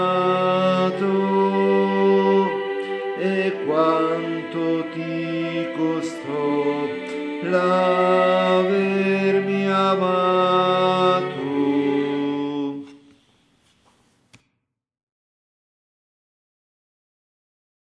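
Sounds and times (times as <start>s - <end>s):
alto vocal part: 0.0s - 13.1s.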